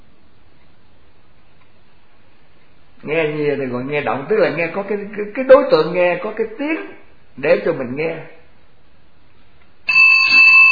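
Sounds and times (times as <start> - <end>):
speech: 3.0 - 8.4
bell struck during a Buddhist teaching: 9.9 - 10.7.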